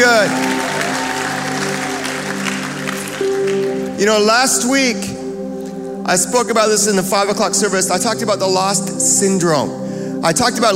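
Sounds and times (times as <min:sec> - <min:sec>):
audience applause: 0:00.0 - 0:04.0
speech: 0:04.0 - 0:05.2, 0:06.1 - 0:10.7.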